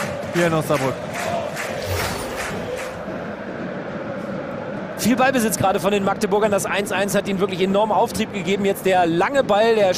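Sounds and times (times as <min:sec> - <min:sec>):
stadium crowd cheering: 0:00.0 - 0:06.5
speech: 0:00.4 - 0:01.1, 0:05.0 - 0:09.9.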